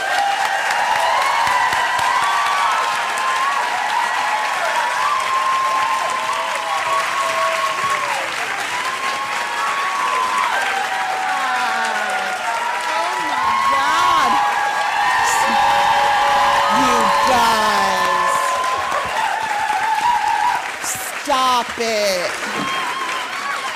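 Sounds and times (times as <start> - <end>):
audience clapping and cheering: 0.0 - 23.7.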